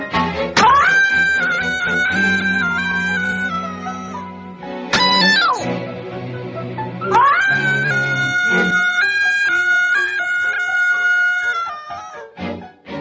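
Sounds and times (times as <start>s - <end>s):
recorded cartoon character scream: 0.6s - 4.3s, 4.9s - 5.7s, 7.1s - 12.2s.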